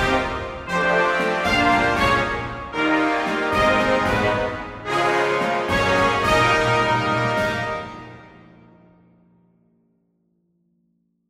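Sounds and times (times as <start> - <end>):
fanfare: 0.0 - 8.8.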